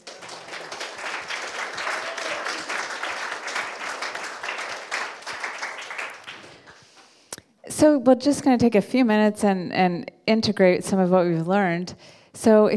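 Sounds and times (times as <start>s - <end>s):
audience applause: 0.0s - 6.8s
speech: 7.8s - 12.7s.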